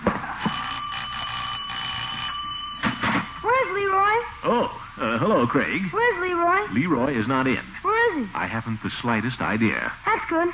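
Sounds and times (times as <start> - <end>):
doorbell buzzing: 0.4 - 4.4
speech: 4.4 - 10.5.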